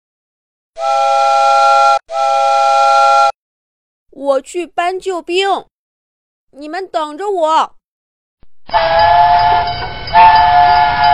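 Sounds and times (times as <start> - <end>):
toy train steam whistle: 0.8 - 3.3, 8.7 - 11.1
speech: 4.2 - 5.7, 6.5 - 7.8, 8.7 - 10.7.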